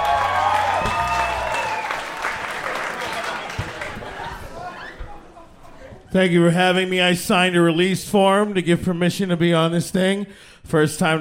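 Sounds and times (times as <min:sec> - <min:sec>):
comedy show audience applauding: 0:00.0 - 0:04.7
speech: 0:06.1 - 0:11.1.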